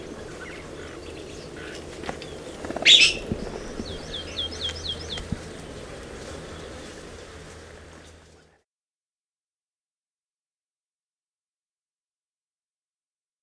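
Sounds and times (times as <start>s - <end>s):
blue mockingbird calling: 0.0s - 6.8s.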